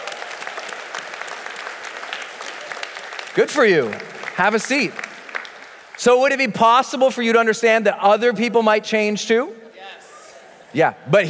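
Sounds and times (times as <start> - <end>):
audience applause: 0.0 - 6.1
speech: 3.4 - 5.0, 6.0 - 9.6, 10.7 - 11.2.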